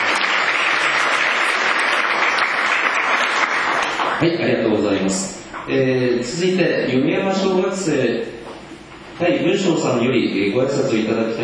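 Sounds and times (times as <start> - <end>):
audience applause: 0.0 - 4.3
speech: 4.2 - 8.4, 9.2 - 11.4.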